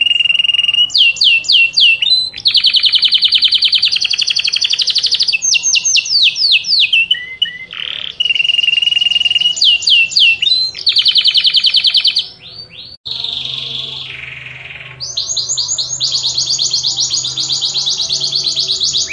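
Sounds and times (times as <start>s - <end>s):
Yorkshire canary singing long vigorous song: 0.0s - 19.1s.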